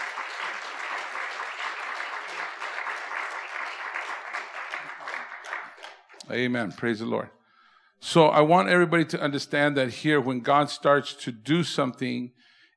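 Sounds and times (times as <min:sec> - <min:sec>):
audience applause: 0:00.0 - 0:06.2
speech: 0:06.3 - 0:07.4, 0:08.0 - 0:12.5.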